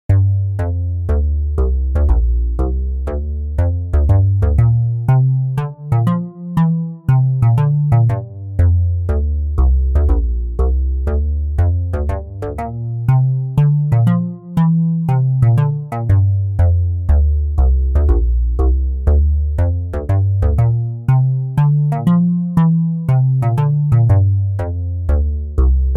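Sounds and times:
walking bass line in D: 0:00.0 - 0:25.9.

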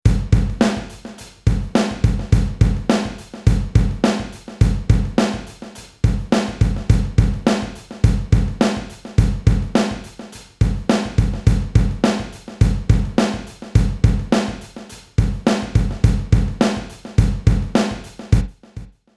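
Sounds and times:
rock drums: 0:00.1 - 0:18.9.

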